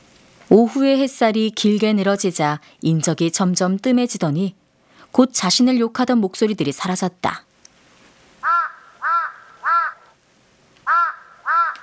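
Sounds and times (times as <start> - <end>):
speech: 0.5 - 7.5
crow cawing: 8.4 - 10.2, 10.8 - 11.8.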